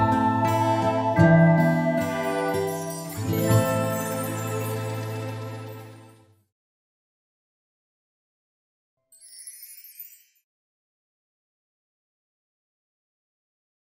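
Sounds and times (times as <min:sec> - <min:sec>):
lullaby for babies: 0:00.0 - 0:06.2.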